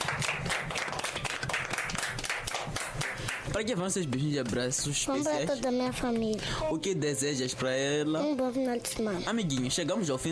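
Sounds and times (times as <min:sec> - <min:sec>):
crowd applauding: 0:00.0 - 0:03.6
speech: 0:03.6 - 0:10.3.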